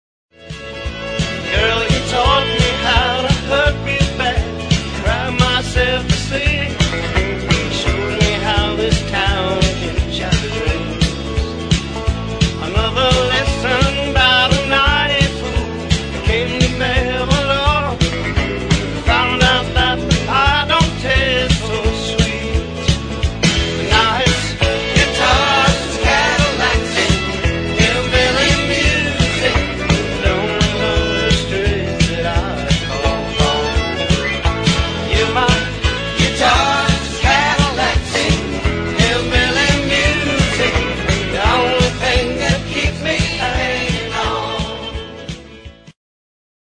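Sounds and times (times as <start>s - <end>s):
guitars: 0.3s - 46.0s.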